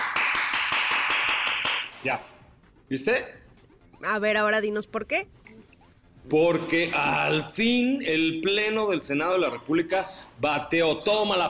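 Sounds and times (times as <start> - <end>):
applause sound effect: 0.0 - 2.4
speech: 2.0 - 3.4, 4.0 - 5.4, 6.2 - 11.4.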